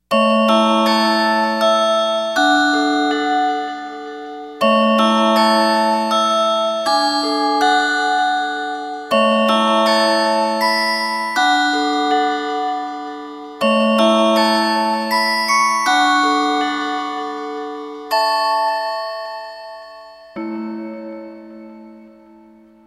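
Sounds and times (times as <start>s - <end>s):
chime: 0.1s - 22.8s.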